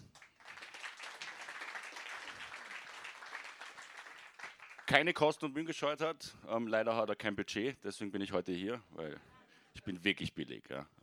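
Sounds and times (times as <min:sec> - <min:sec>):
audience applause: 0:00.0 - 0:05.1
speech: 0:04.9 - 0:11.0.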